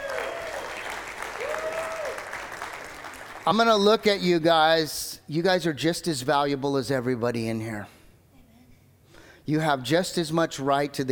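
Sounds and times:
audience cheering and applauding: 0.0s - 3.8s
speech: 3.4s - 8.0s, 9.5s - 11.0s.

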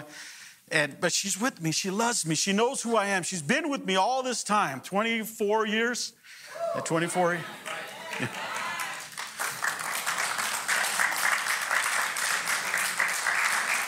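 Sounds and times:
speech: 0.1s - 8.5s
audience applause: 6.6s - 13.8s.

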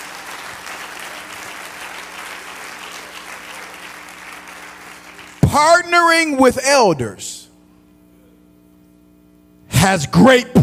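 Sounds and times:
audience clapping: 0.0s - 5.9s
speech: 5.6s - 7.4s, 9.8s - 10.6s.

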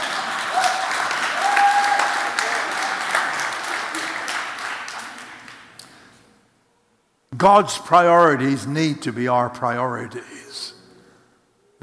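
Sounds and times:
audience applause: 0.0s - 6.0s
speech: 7.4s - 10.7s.

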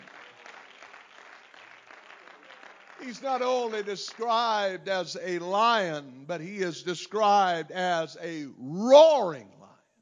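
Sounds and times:
audience clapping hands: 0.0s - 4.7s
speech: 3.0s - 9.6s.

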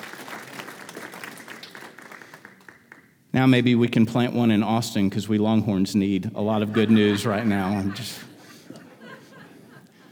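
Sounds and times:
audience applause: 0.0s - 3.1s
speech: 3.3s - 8.3s
laughter: 6.5s - 10.1s.

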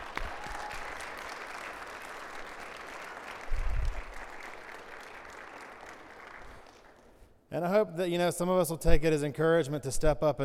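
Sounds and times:
crowd applauding: 0.0s - 7.2s
speech: 7.5s - 10.4s.

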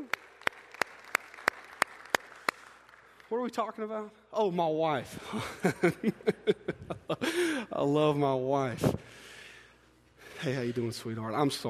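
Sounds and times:
audience applause: 0.0s - 3.3s
speech: 3.3s - 9.1s, 10.4s - 11.6s
laughter: 5.2s - 7.7s.

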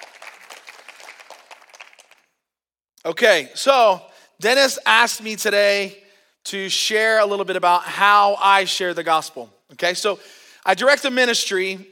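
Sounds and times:
congregation applause at a Christian worship gathering: 0.0s - 2.4s
speech: 3.0s - 11.8s.

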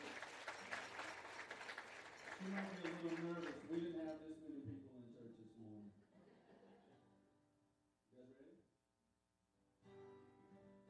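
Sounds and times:
audience clapping: 0.0s - 4.2s
speech: 2.4s - 6.0s
laughter: 6.0s - 7.2s.

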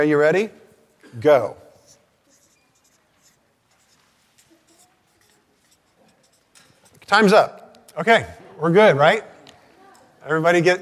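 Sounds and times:
speech: 0.0s - 1.6s, 7.1s - 9.3s, 10.2s - 10.7s
people writing out notes on paper during a church teaching session: 1.8s - 7.3s.

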